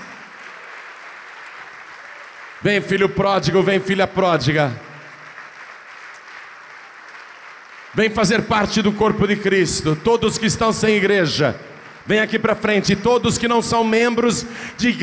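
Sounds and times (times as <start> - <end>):
audience applause: 0.0 - 9.2, 10.9 - 13.0
person speaking loudly: 2.6 - 4.8, 8.0 - 15.0
speech: 2.6 - 4.9, 8.0 - 15.0.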